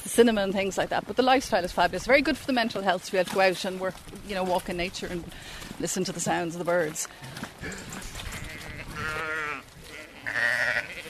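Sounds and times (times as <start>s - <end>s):
speech: 0.2s - 8.0s
dairy sheep bleating: 7.6s - 11.0s.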